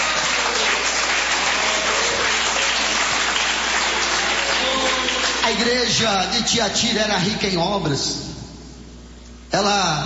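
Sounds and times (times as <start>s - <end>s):
people clapping in worship: 0.0s - 5.9s
speech: 5.6s - 8.2s, 9.5s - 10.0s.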